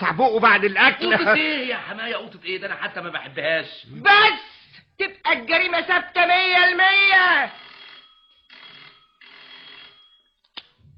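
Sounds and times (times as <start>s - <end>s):
speech: 0.0s - 7.6s
telephone ringing: 7.3s - 10.4s.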